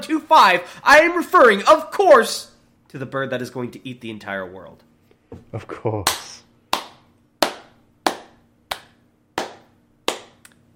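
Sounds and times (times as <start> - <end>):
speech: 0.1 - 6.4
hands clapping: 6.0 - 10.6.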